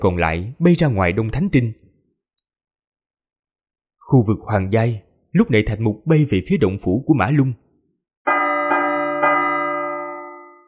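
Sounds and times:
speech: 0:00.0 - 0:01.8, 0:04.1 - 0:07.6
loud alarm bell ringing: 0:08.3 - 0:10.6.

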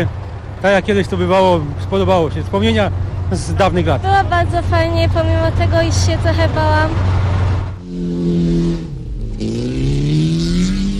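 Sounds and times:
speech: 0:00.0 - 0:07.3
cheap car engine revving hard at a wreck race: 0:07.0 - 0:10.9.

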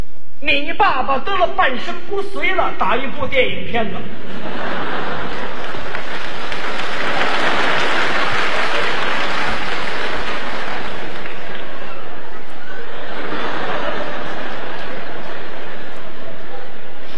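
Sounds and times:
speech: 0:00.4 - 0:04.6
people laughing: 0:04.2 - 0:17.1
audience applause: 0:04.5 - 0:16.7.

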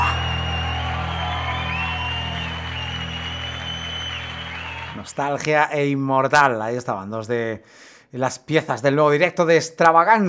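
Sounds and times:
heavy metal concert crowd applause and cheering: 0:00.0 - 0:05.3
speech: 0:05.0 - 0:10.2.

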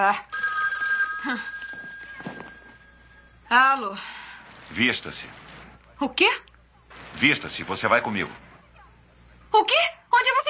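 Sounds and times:
speech: 0:00.0 - 0:00.4, 0:01.2 - 0:01.6, 0:03.5 - 0:04.1, 0:04.7 - 0:05.4, 0:06.0 - 0:06.5, 0:07.1 - 0:08.4, 0:09.5 - 0:10.0
telephone bell ringing: 0:00.2 - 0:03.6.

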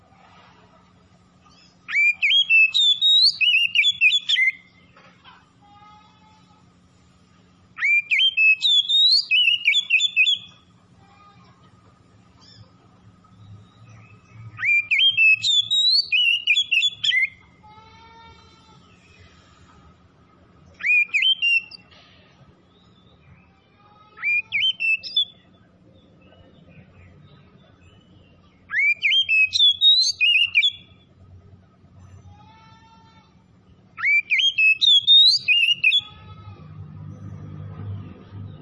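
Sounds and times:
Oriental magpie-robin song: 0:01.5 - 0:04.7, 0:07.8 - 0:10.6, 0:13.6 - 0:17.4, 0:20.8 - 0:21.8, 0:24.2 - 0:25.4, 0:27.7 - 0:31.0, 0:34.0 - 0:36.1.

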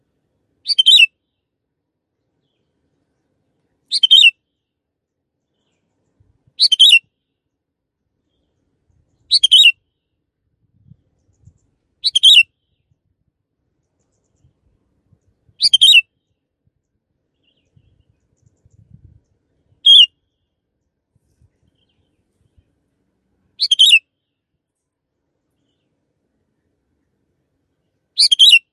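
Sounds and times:
canary chirping: 0:00.6 - 0:01.1, 0:03.9 - 0:04.3, 0:06.6 - 0:07.0, 0:09.3 - 0:09.7, 0:12.0 - 0:12.4, 0:15.6 - 0:16.0, 0:19.8 - 0:20.1, 0:23.6 - 0:24.0, 0:28.2 - 0:28.6.

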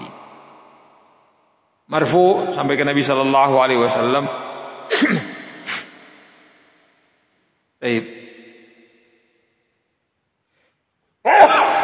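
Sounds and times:
speech: 0:01.9 - 0:04.4
person sneezing: 0:04.9 - 0:06.0.

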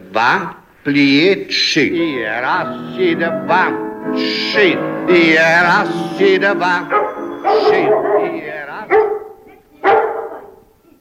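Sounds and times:
speech: 0:00.1 - 0:09.1
German shepherd dog barking: 0:06.8 - 0:10.8.

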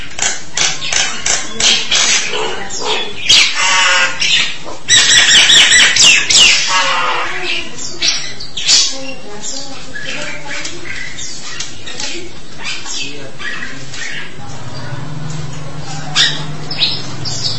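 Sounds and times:
starling singing: 0:00.0 - 0:17.5.

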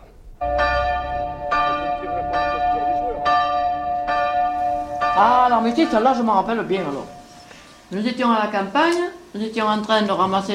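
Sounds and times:
church bell ringing: 0:00.4 - 0:07.7
speech: 0:05.2 - 0:07.2, 0:07.9 - 0:10.5.

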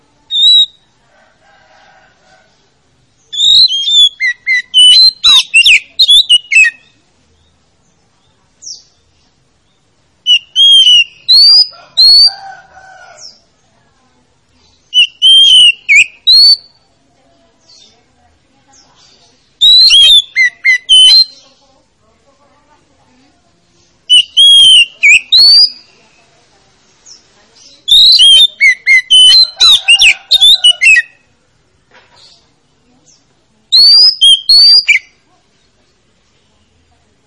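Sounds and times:
Oriental magpie-robin singing: 0:00.3 - 0:00.8, 0:03.2 - 0:07.0, 0:10.2 - 0:12.3, 0:14.8 - 0:16.8, 0:19.6 - 0:21.4, 0:24.1 - 0:25.9, 0:27.8 - 0:31.2, 0:33.7 - 0:35.1.

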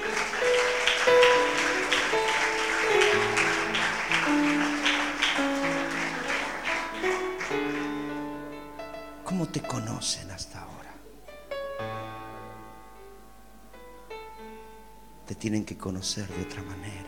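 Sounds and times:
audience applauding: 0:00.0 - 0:09.4
sustained musical tones: 0:00.0 - 0:17.0
speech: 0:15.4 - 0:17.0.

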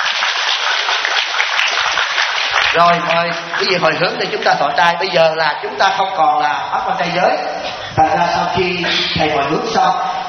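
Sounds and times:
audience clapping at a Buddhist dharma gathering in Atlanta: 0:00.0 - 0:04.6
speech: 0:02.8 - 0:10.1.

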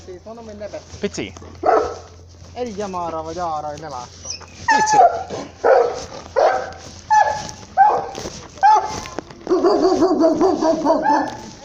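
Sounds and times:
speech: 0:00.0 - 0:06.2, 0:09.6 - 0:11.5
dog barking and whimpering: 0:01.6 - 0:02.1, 0:04.2 - 0:11.6.

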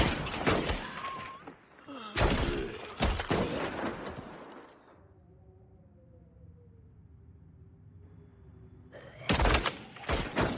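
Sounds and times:
gunshots outside: 0:00.0 - 0:04.8, 0:09.2 - 0:10.5.

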